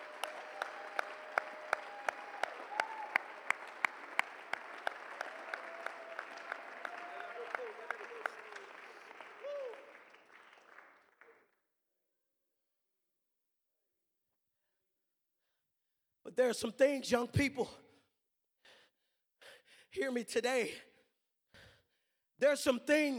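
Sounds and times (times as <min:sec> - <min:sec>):
audience clapping hands in unison rhythm: 0:00.0 - 0:11.4
speech: 0:16.4 - 0:17.8, 0:20.1 - 0:20.9, 0:22.4 - 0:23.1.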